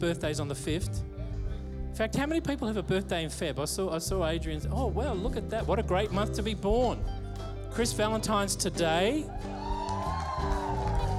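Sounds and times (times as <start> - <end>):
speech: 0.0 - 1.1, 2.0 - 9.6
crowd cheering: 7.8 - 11.1.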